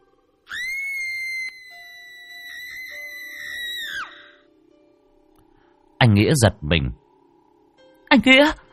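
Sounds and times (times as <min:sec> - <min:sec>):
woman's shrill scream: 0:00.5 - 0:04.4
speech: 0:06.0 - 0:07.0, 0:08.1 - 0:08.6.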